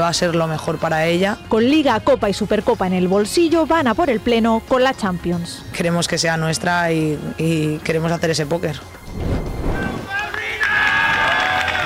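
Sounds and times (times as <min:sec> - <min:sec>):
speech: 0:00.1 - 0:09.3
teammates' ovation and cheering: 0:09.6 - 0:11.8.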